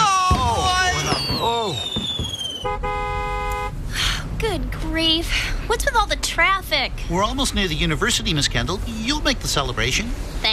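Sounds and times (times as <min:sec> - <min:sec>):
stored fireworks whistling, set off by a stray spark under canvas: 0:00.3 - 0:02.8
horn-like tooting tone: 0:02.6 - 0:03.8
speech: 0:05.0 - 0:10.5.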